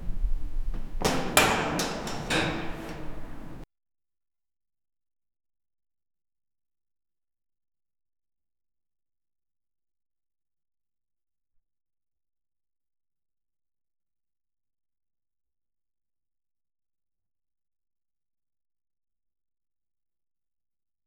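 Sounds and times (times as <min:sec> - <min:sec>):
underground cellar ambience: 0:00.0 - 0:03.6.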